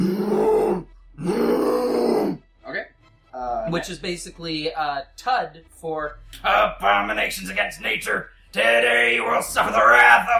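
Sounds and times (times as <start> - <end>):
person imitating a bear roar: 0.0 - 2.4
speech: 3.7 - 10.3.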